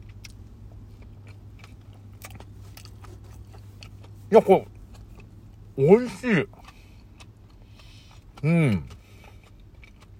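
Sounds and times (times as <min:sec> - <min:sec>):
crunchy bites of a 7-Eleven vegetable mix sandwich with tomato: 0:00.0 - 0:10.1
low steady hum: 0:00.0 - 0:10.1
speech: 0:04.3 - 0:04.7, 0:05.8 - 0:06.6, 0:08.4 - 0:09.0.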